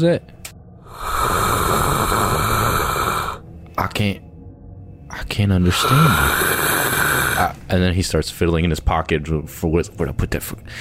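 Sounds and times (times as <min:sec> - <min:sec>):
speech: 0:00.0 - 0:00.3, 0:03.8 - 0:04.2, 0:05.2 - 0:06.6, 0:07.4 - 0:10.7
person voicing a crocodile hiss: 0:00.9 - 0:03.4, 0:05.7 - 0:07.5
short guttural vocal bursts: 0:00.9 - 0:03.4, 0:05.7 - 0:07.6.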